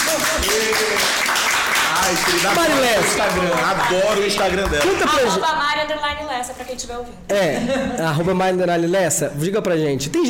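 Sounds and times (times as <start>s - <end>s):
applause: 0.0s - 5.2s
laughter: 2.0s - 5.9s, 7.4s - 8.3s
speech: 2.1s - 10.2s.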